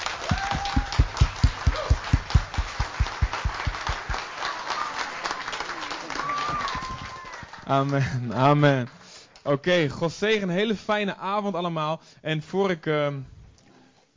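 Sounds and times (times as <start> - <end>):
audience applause: 0.0 - 8.9
speech: 7.7 - 13.3.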